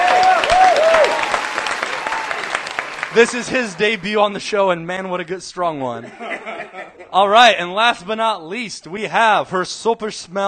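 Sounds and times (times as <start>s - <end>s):
applause: 0.0s - 4.2s
speech: 3.2s - 10.4s
laughter: 6.0s - 7.4s.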